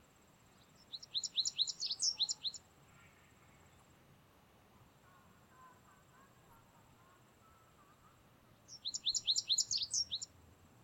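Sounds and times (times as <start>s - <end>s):
American Goldfinch Carduelis tristis twittering calls: 0.7s - 2.6s, 8.7s - 10.3s.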